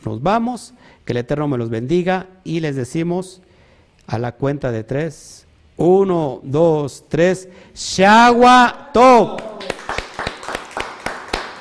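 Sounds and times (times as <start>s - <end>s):
speech: 0.0s - 3.5s, 4.1s - 9.7s
audience clapping: 9.3s - 11.5s.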